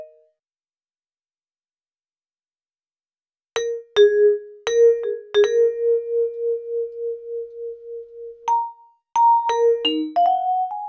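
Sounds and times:
vibraphone: 3.6 - 10.8.

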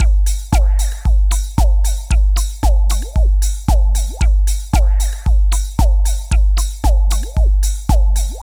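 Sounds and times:
industrial techno music: 0.0 - 8.4.

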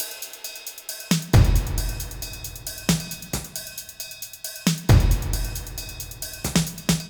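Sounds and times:
full percussion and snare beat: 0.0 - 7.0.

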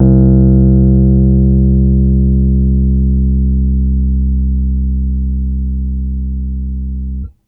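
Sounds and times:
Rhodes electric piano C1 medium: 0.0 - 7.3.

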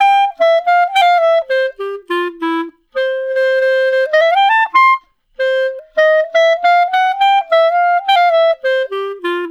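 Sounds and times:
clarinet solo: 0.0 - 9.5.

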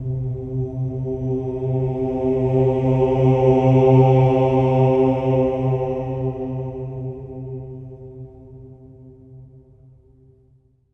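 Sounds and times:
choir singing oh at C3: 0.9 - 7.6.

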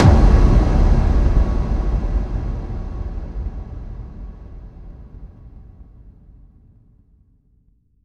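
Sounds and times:
effect kick drum hits: 0.0 - 4.6.

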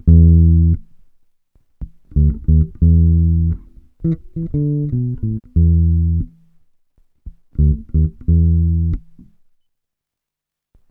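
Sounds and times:
funk bass grooves: 0.0 - 0.8, 2.1 - 6.4, 7.6 - 9.2.

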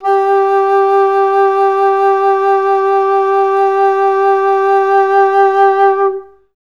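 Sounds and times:
alto flutes sustaining G3: 0.0 - 6.5.

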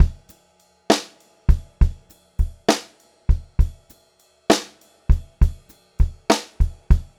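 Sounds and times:
pop-rock drum loop: 0.0 - 0.3, 0.9 - 3.8, 4.5 - 7.1.

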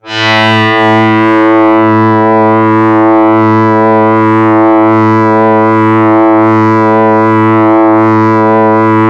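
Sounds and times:
Yamaha YX81Z double bass note A2: 0.0 - 9.0.

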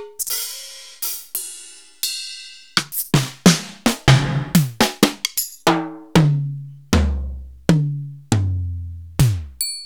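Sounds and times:
Alesis HR16A drum machine: 2.8 - 9.6.

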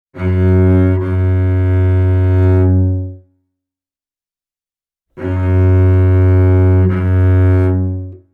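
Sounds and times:
Celtic cello music: 0.2 - 3.2, 5.2 - 8.3.

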